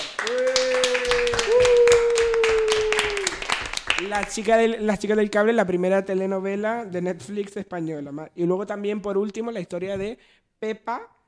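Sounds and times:
applause: 0.0 - 4.7
speech: 4.1 - 11.2.

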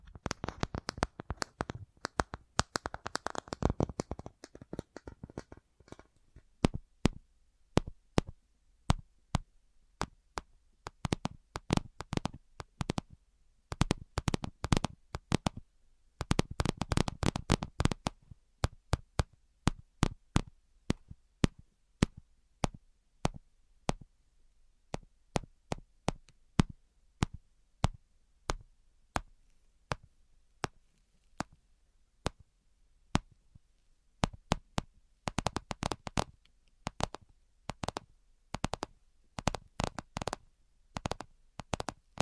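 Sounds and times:
sharp dry tapping clicks: 0.1 - 7.2, 7.8 - 13.1, 13.7 - 15.6, 16.2 - 24.0, 24.9 - 28.6, 34.2 - 40.4, 41.0 - 42.1.

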